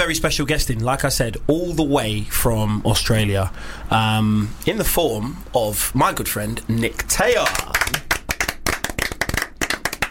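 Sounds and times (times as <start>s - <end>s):
speech: 0.0s - 8.2s
person clapping: 7.4s - 10.0s.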